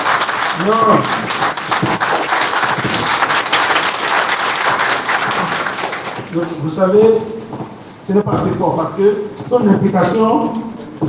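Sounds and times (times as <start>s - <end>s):
audience applause: 0.0s - 6.7s
speech: 0.6s - 2.0s, 6.4s - 11.0s.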